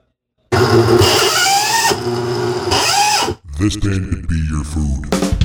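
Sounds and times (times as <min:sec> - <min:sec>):
blender motor running: 0:00.5 - 0:03.4
speech: 0:03.6 - 0:05.3.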